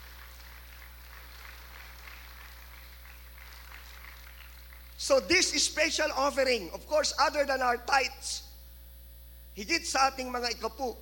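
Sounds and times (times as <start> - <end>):
audience clapping: 0.0 - 5.3
speech: 5.0 - 8.5, 9.6 - 11.0.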